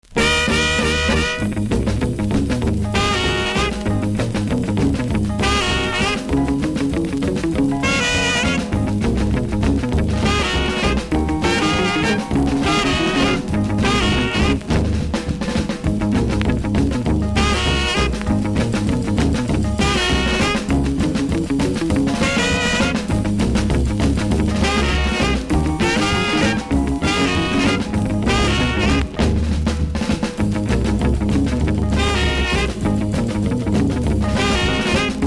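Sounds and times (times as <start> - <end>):
record scratching: 0.0 - 35.2.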